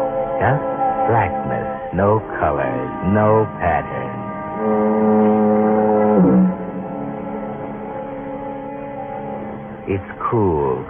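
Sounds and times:
speech: 0:00.4 - 0:05.3, 0:09.9 - 0:10.8
monotonous moaning foghorn: 0:02.2 - 0:09.7.

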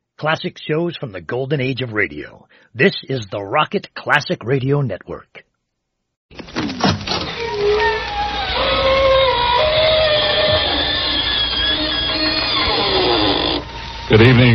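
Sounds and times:
speech: 0:00.2 - 0:05.5, 0:14.1 - 0:14.5
creaking door opening: 0:06.4 - 0:14.5.

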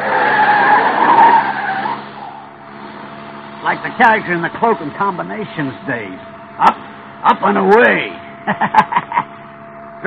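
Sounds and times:
car skidding around a corner on the handbrake, tire squeal: 0:00.0 - 0:10.0
speech: 0:03.8 - 0:09.2
laughter: 0:08.4 - 0:09.4.

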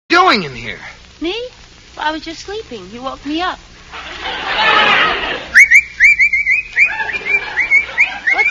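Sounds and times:
soft hissing noise: 0:00.1 - 0:08.4
speech: 0:00.2 - 0:05.4
laughter: 0:03.9 - 0:05.6, 0:06.5 - 0:08.4
person whistling a tune: 0:05.5 - 0:08.4.

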